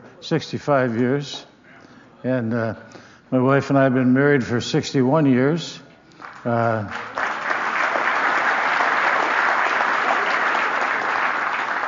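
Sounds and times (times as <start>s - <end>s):
speech: 0.2s - 1.5s, 2.2s - 5.8s, 6.4s - 7.1s
audience applause: 6.2s - 11.8s.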